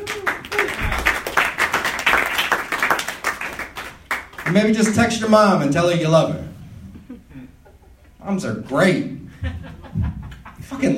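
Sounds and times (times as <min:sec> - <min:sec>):
audience applause: 0:00.0 - 0:04.6
speech: 0:04.5 - 0:06.5, 0:08.2 - 0:09.6
laughter: 0:09.3 - 0:10.9.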